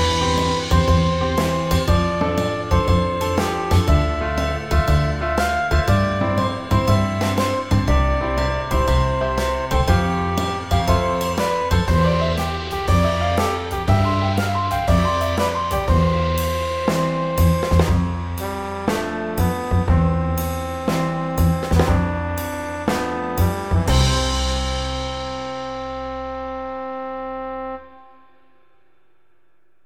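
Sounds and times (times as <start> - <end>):
gentle morning jazz music: 0.0 - 28.8.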